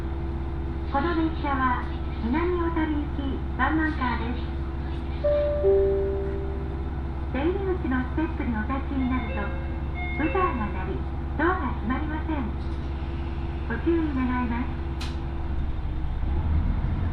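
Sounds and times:
Oito Line train rumble from Itoigawa to Minami-Otari: 0:00.0 - 0:17.1
brief steady tone: 0:05.2 - 0:07.0.

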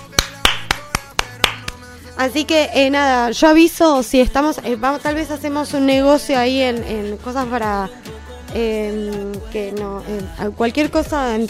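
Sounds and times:
clapping: 0:00.1 - 0:01.8
speech: 0:02.2 - 0:11.4.

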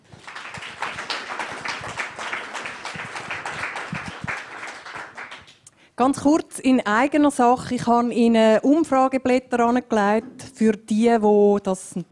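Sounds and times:
audience applause: 0:00.0 - 0:05.6
speech: 0:06.0 - 0:12.1.

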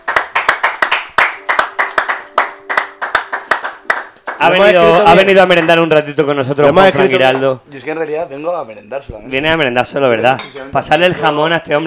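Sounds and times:
audience applause: 0:00.0 - 0:05.1
speech: 0:04.5 - 0:11.8.

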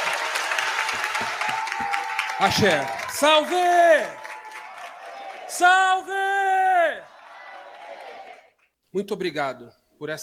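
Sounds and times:
standing audience applause: 0:00.0 - 0:08.6
speech: 0:00.9 - 0:01.4, 0:02.4 - 0:04.2, 0:05.5 - 0:07.1, 0:08.9 - 0:10.2.

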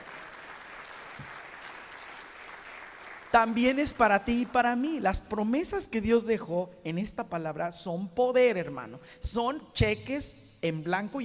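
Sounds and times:
audience applause: 0:00.0 - 0:03.4
speech: 0:03.3 - 0:11.2.

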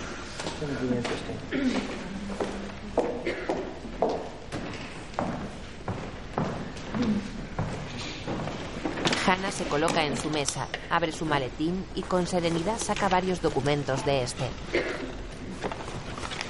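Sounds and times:
footsteps walking down lecture hall stairs: 0:00.0 - 0:09.9
speech: 0:00.6 - 0:02.5, 0:09.3 - 0:15.0.

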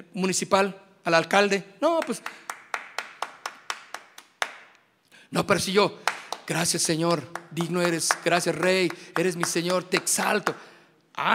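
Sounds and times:
speech: 0:00.2 - 0:02.5, 0:05.3 - 0:11.3
crowd hand clapping: 0:02.0 - 0:04.9, 0:06.0 - 0:10.7.

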